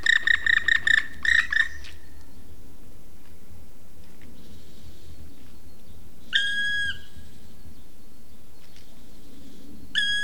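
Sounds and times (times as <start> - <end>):
black woodpecker loud plaintive ringing call: 0.0 - 1.8.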